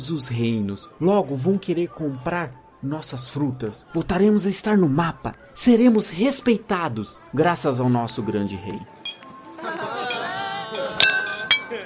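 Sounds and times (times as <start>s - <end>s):
speech: 0.0s - 9.0s
glasses clinking in a tavern toast: 9.0s - 9.3s, 10.0s - 11.8s
laughter: 9.5s - 11.8s.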